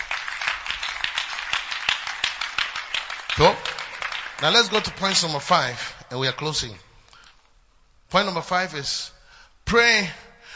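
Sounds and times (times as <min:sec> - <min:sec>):
crowd clapping: 0:00.0 - 0:06.0
speech: 0:04.4 - 0:06.8, 0:08.1 - 0:10.2.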